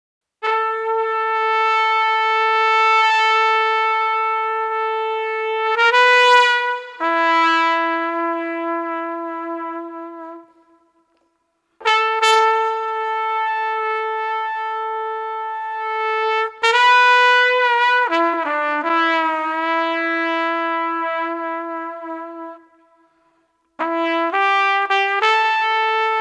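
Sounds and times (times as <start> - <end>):
sustained street trumpet: 0.4 - 11.2, 11.8 - 23.2, 23.8 - 26.1.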